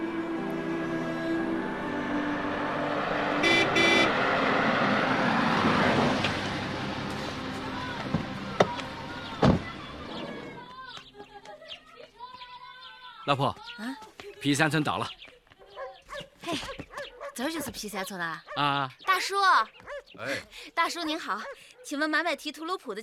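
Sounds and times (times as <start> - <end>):
brief horn-like tone: 0.0 - 4.5
car driving on a road: 0.0 - 10.6
speech: 13.3 - 15.2, 17.4 - 23.0.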